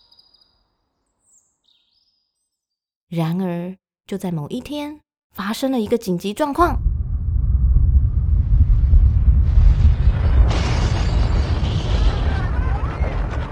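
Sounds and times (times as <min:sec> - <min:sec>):
speech: 0:03.1 - 0:06.9
deep earthquake rumble sound effect: 0:06.6 - 0:13.5
crackling, crumbling debris: 0:08.7 - 0:13.5.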